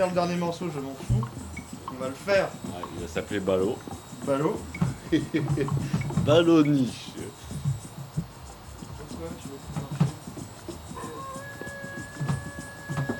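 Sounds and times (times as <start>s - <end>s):
speech: 0.0s - 7.1s
low mumbling voices: 0.0s - 7.6s, 8.6s - 13.1s
soft thumps: 1.0s - 13.1s
laughter: 4.4s - 7.4s
rooster crowing: 10.9s - 13.1s.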